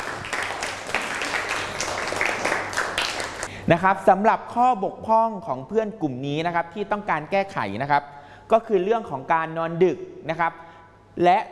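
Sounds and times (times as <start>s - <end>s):
classroom clapping: 0.0s - 3.5s
speech: 3.7s - 10.6s, 11.2s - 11.4s.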